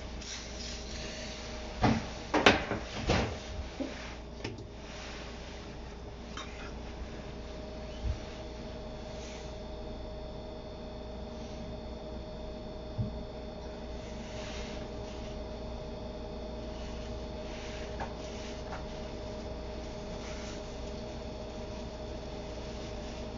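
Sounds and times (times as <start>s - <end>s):
steady low hum: 0.0s - 23.3s
kitchen clatters and knocks while making a sake-lees pickling bed: 1.8s - 3.4s.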